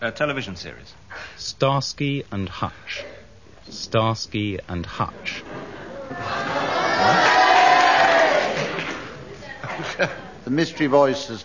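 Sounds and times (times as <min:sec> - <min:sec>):
speech: 0:00.0 - 0:05.5, 0:06.1 - 0:07.3, 0:10.0 - 0:11.4
laughter: 0:05.2 - 0:10.4
crowd cheering: 0:05.7 - 0:09.4.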